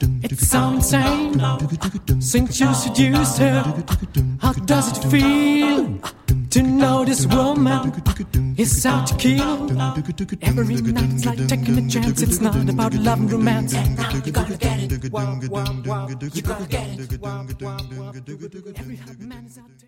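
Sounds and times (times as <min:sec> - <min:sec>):
vocal ensemble singing: 0:00.0 - 0:19.8.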